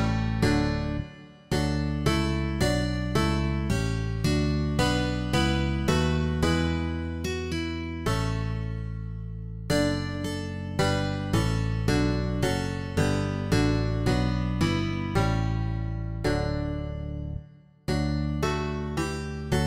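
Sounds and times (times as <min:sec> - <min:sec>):
bass guitar: 0:00.0 - 0:19.6.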